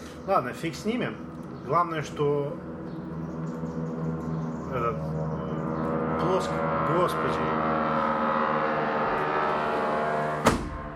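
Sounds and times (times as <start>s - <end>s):
crop-duster biplanes droning loudly: 0.0s - 10.9s
speech: 0.3s - 2.7s, 4.7s - 5.4s, 6.2s - 7.8s.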